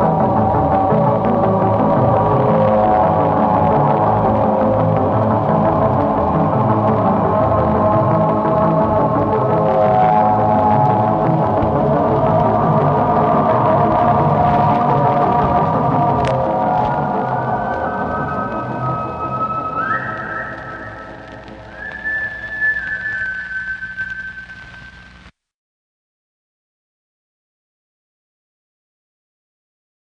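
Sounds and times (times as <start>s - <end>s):
horror soundtrack music: 0.0s - 23.4s.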